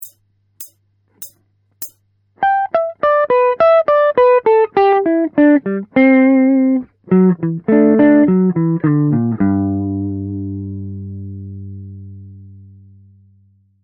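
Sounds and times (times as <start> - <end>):
blues music: 3.3 - 11.9.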